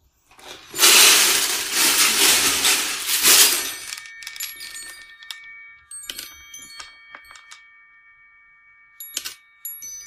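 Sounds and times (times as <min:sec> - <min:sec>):
small balls cascading from a childhood toy: 0:00.3 - 0:05.4.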